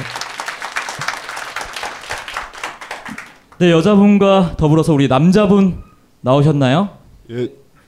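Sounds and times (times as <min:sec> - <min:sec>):
audience applause: 0:00.0 - 0:03.6
speech: 0:03.6 - 0:07.6.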